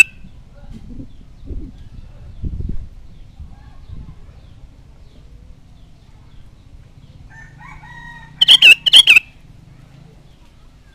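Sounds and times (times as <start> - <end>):
sooty-headed bulbul chattering: 0.0 - 0.3, 8.4 - 9.4.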